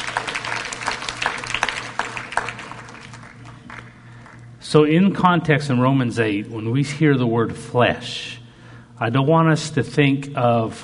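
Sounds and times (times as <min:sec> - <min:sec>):
hand clapping: 0:00.0 - 0:04.5
speech: 0:04.7 - 0:08.4, 0:09.0 - 0:10.8.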